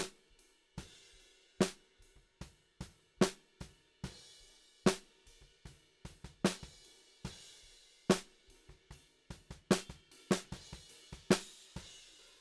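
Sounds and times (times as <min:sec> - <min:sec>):
snare drum: 0:06.3 - 0:06.7, 0:08.1 - 0:08.4, 0:09.5 - 0:11.8.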